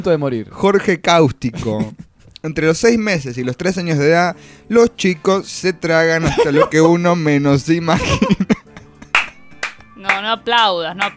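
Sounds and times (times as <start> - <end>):
speech: 0.0 - 8.4, 10.2 - 11.1
laughter: 1.5 - 2.3, 6.2 - 7.1, 7.9 - 9.2
sharp irregular hand claps: 8.8 - 11.1.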